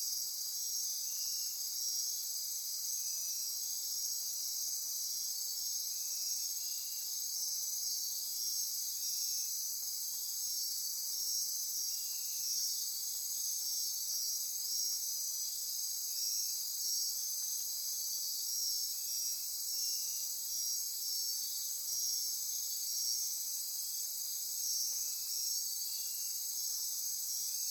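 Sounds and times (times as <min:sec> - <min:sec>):
insect chorus drone: 0:00.0 - 0:27.6.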